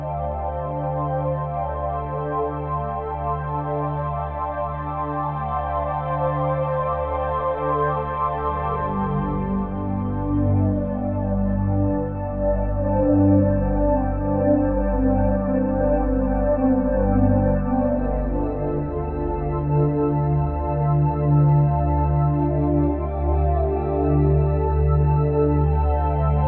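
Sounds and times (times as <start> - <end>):
ambient music loop: 0.0 - 26.4.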